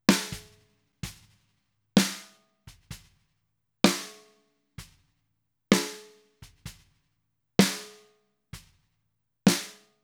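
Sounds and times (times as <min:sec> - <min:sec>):
snare drum: 0:00.0 - 0:01.4, 0:02.0 - 0:03.2, 0:03.9 - 0:04.2, 0:05.7 - 0:06.9, 0:07.6 - 0:08.0, 0:09.5 - 0:09.8.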